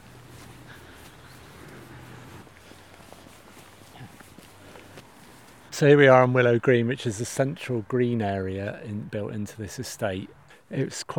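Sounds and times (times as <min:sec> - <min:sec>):
footsteps walking up to the central green of a housing estate: 0:00.0 - 0:05.8
outdoor noise: 0:00.0 - 0:11.1
speech: 0:05.8 - 0:11.1.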